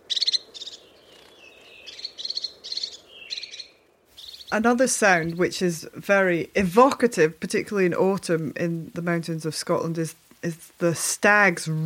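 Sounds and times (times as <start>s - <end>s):
crested tit calls: 0.0s - 6.9s
speech: 4.5s - 11.8s.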